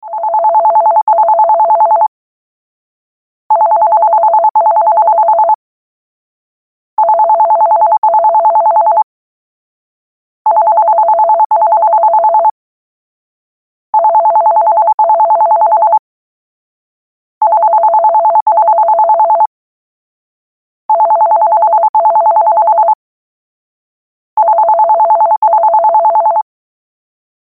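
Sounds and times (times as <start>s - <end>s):
landline phone ringtone: 0.0s - 2.1s, 3.5s - 5.6s, 7.0s - 9.1s, 10.5s - 12.6s, 14.0s - 16.0s, 17.4s - 19.5s, 20.9s - 23.0s, 24.4s - 26.5s.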